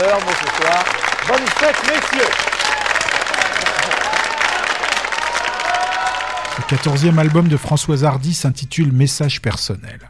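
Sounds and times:
speech: 0.0 - 2.9, 6.6 - 10.0
audience applause: 0.0 - 8.0.

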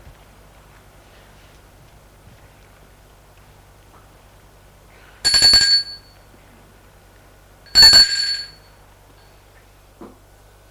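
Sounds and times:
house doorbell ringing: 5.3 - 6.2, 7.7 - 8.7.

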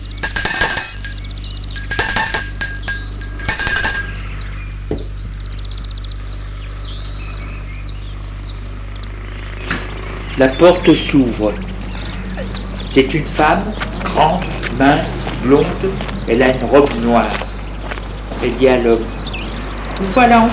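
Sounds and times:
doorbell ringing: 0.0 - 4.6
speech: 10.4 - 11.7, 13.0 - 17.5, 18.4 - 19.2, 20.0 - 20.5.

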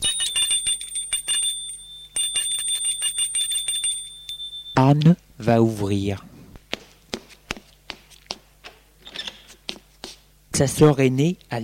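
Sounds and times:
doorbell ringing at front door: 0.0 - 4.9
speech: 4.8 - 6.3, 10.6 - 11.6.

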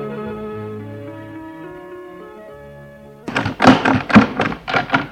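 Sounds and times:
front door opening: 3.3 - 5.1.

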